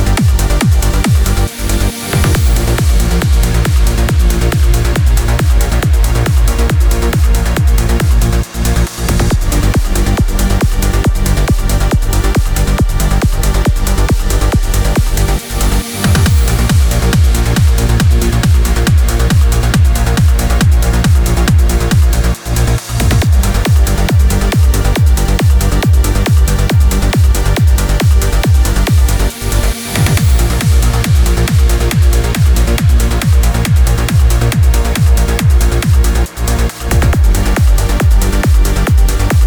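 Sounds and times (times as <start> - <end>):
trance kick drums: 0.0 - 39.4.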